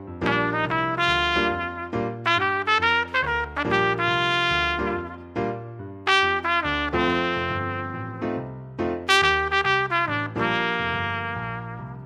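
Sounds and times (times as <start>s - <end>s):
trumpet: 0.2s - 12.0s.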